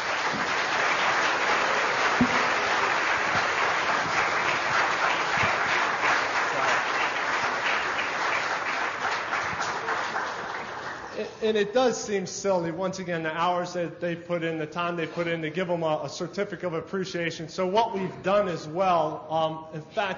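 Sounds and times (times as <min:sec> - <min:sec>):
audience applause: 0:00.0 - 0:11.3
speech: 0:11.4 - 0:20.1.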